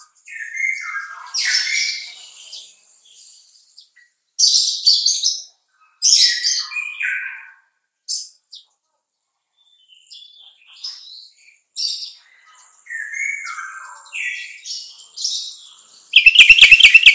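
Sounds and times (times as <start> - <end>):
sooty-headed bulbul singing: 16.1 - 17.1.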